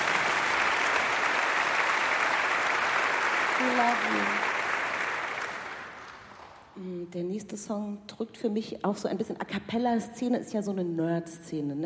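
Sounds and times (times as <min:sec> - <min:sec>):
audience applause: 0:00.0 - 0:06.7
speech: 0:03.6 - 0:04.5, 0:07.1 - 0:11.8.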